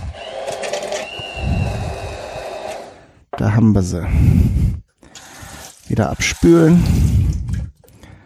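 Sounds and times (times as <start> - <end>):
hand blender pureeing onion pieces: 0.0 - 3.2, 5.0 - 7.6
speech: 3.4 - 4.8, 5.9 - 7.2.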